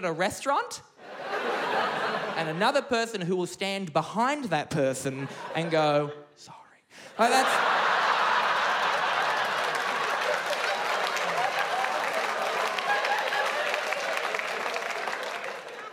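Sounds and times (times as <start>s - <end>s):
speech: 0.0s - 1.6s, 2.4s - 7.8s
laughter: 1.0s - 2.6s, 5.1s - 6.3s, 7.1s - 15.9s
crowd clapping: 7.6s - 15.9s.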